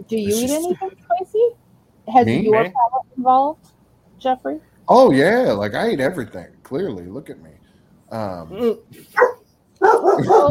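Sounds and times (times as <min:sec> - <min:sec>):
speech: 0:00.0 - 0:09.3, 0:10.1 - 0:10.4
dogs barking: 0:09.1 - 0:10.4.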